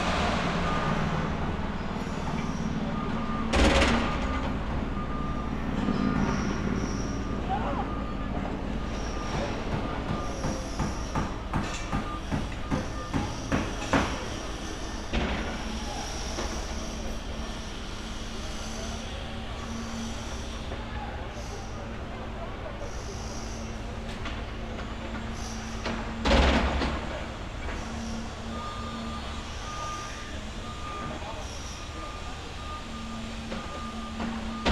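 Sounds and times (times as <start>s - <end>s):
construction site ambience: 0.0s - 34.7s.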